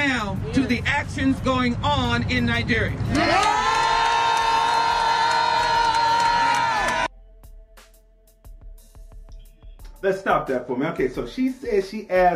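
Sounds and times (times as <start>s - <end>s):
speech: 0.1s - 3.8s, 10.0s - 12.3s
crowd clapping and cheering: 3.0s - 7.1s.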